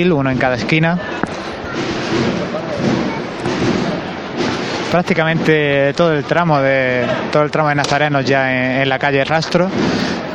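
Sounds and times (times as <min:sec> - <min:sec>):
speech: 0:00.0 - 0:03.0, 0:04.9 - 0:10.1
procession drum beating: 0:00.2 - 0:06.4.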